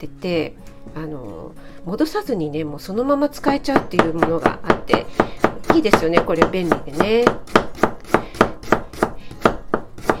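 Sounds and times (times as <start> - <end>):
speech: 0.0 - 7.5
knife chopping carrots: 3.4 - 10.1.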